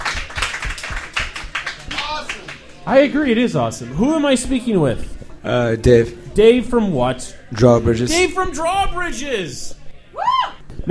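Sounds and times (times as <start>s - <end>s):
group of people clapping: 0.0s - 2.9s
speech: 2.8s - 9.8s.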